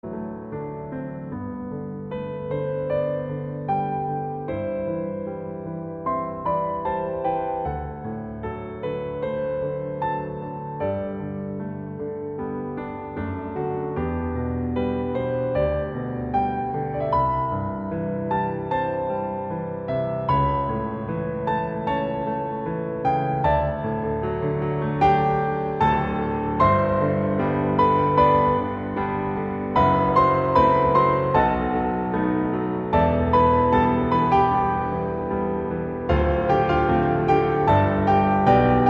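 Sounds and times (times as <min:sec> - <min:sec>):
piano cover: 0:00.0 - 0:38.8.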